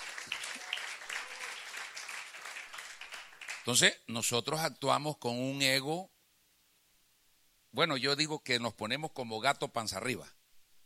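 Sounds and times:
crowd applause: 0.0 - 3.7
speech: 3.6 - 6.2, 7.7 - 10.4.

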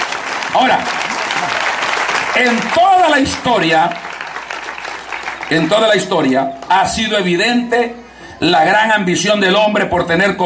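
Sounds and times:
church congregation applause: 0.0 - 7.2
speech: 0.5 - 1.6, 2.3 - 4.1, 5.5 - 10.4.

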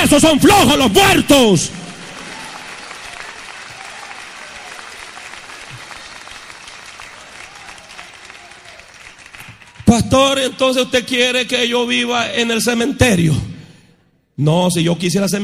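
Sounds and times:
speech: 0.1 - 1.9, 9.9 - 13.5, 14.4 - 15.4
audience clapping: 1.0 - 10.4.

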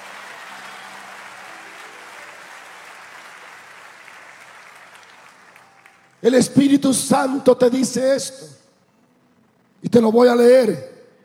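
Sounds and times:
applause: 0.0 - 6.9
speech: 6.2 - 8.6, 10.0 - 10.9.

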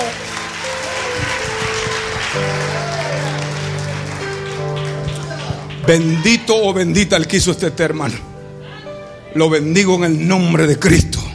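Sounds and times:
audience applause: 0.0 - 6.5
sustained organ or keyboard chord: 0.0 - 8.6
speech: 5.9 - 8.3, 9.3 - 11.2.

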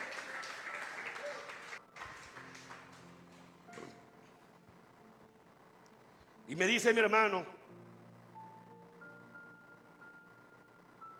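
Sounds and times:
audience clapping: 0.0 - 4.1
speech: 6.5 - 7.6.

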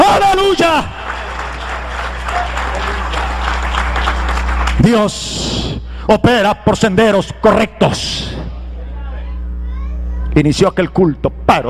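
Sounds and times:
audience applause: 0.0 - 4.9
speech: 4.8 - 8.4, 10.4 - 11.6.

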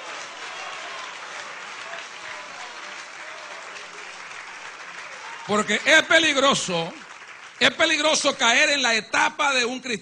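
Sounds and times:
audience applause: 0.0 - 9.0
speech: 5.5 - 7.0, 7.6 - 9.9.

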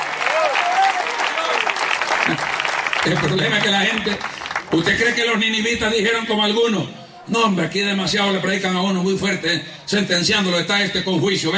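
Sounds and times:
audience applause: 0.0 - 5.2
speech: 3.0 - 11.5.

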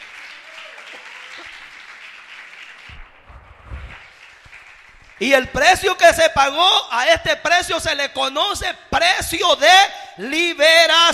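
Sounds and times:
audience applause: 0.0 - 5.5
speech: 5.2 - 11.1.

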